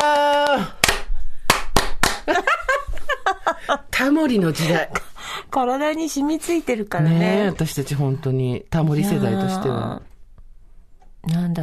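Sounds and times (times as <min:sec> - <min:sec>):
rhythmic audience clapping in the style of Waratte Iitomo: 0:00.0 - 0:02.6
speech: 0:03.6 - 0:10.1, 0:11.2 - 0:11.6.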